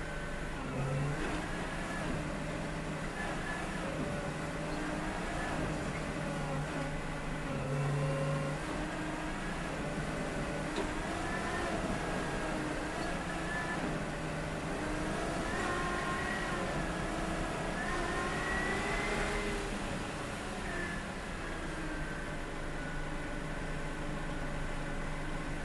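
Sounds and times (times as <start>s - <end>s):
vehicle driving slowly, stopping and reversing, recorded onboard: 0.0s - 25.6s.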